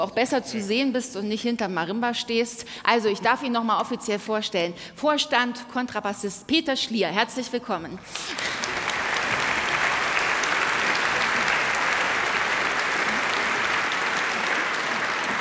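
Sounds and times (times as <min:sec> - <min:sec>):
speech: 0:00.0 - 0:09.4
audience applause: 0:08.2 - 0:15.3.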